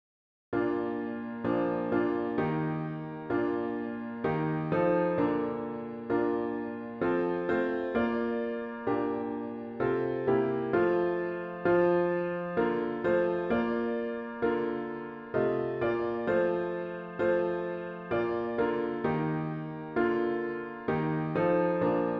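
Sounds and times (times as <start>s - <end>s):
solo piano: 0.5s - 22.1s.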